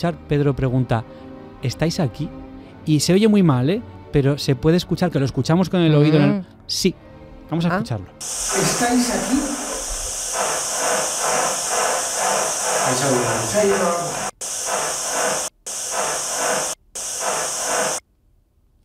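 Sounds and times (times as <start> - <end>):
speech: 0.0 - 9.6, 12.9 - 14.2
radio static hiss on empty frequency: 8.2 - 18.0.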